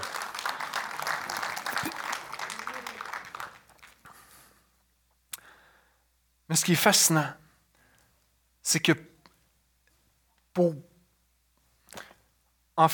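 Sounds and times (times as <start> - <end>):
audience applause in church: 0.0 - 4.3
speech: 6.5 - 7.4, 8.7 - 9.1, 10.6 - 10.9.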